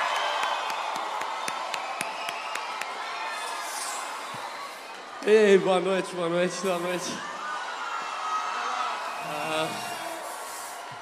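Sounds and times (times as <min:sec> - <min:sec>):
crowd applause: 0:00.0 - 0:05.0
crowd cheering and whooping: 0:00.0 - 0:05.6, 0:06.8 - 0:10.9
speech: 0:05.2 - 0:07.3.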